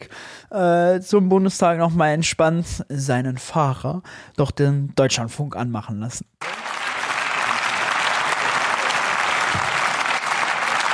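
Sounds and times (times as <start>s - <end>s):
speech: 0.5s - 6.6s
applause in parliament: 6.4s - 10.9s.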